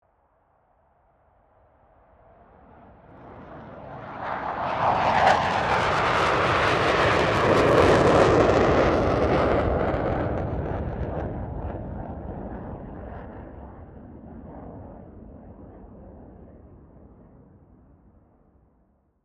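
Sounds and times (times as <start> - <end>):
FA-18 Hornet aircraft passing: 2.3 - 17.4.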